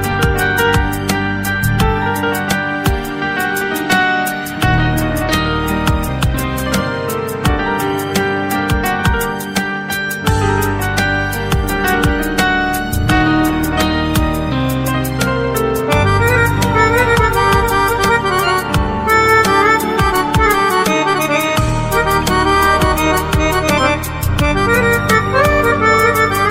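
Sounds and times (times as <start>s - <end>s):
piano accordion playing: 0.0s - 26.4s.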